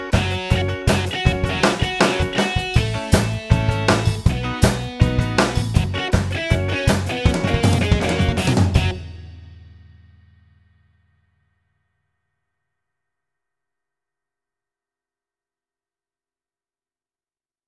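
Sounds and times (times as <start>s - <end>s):
karaoke singing: 0.1s - 4.5s, 5.1s - 8.9s.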